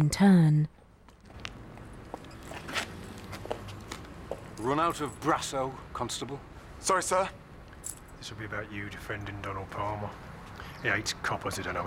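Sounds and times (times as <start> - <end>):
speech: 0.0 - 0.8, 4.6 - 11.8
chief superintendent's footsteps along a line of police officers: 0.8 - 4.7.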